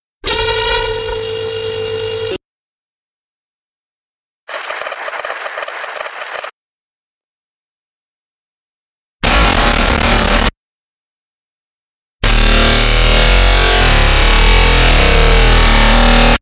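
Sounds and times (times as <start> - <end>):
glitch noise: 0.3 - 2.4, 9.2 - 10.5, 12.2 - 16.4.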